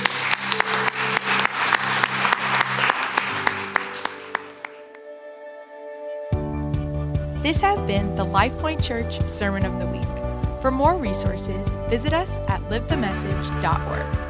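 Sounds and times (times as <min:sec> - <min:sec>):
crowd applauding: 0:00.0 - 0:05.0
sustained keyboard chords: 0:00.0 - 0:14.2
speech: 0:07.4 - 0:14.2.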